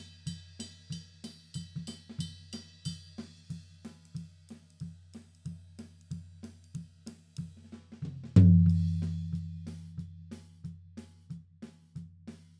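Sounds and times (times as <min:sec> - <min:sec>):
tom drums: 0:00.0 - 0:12.5.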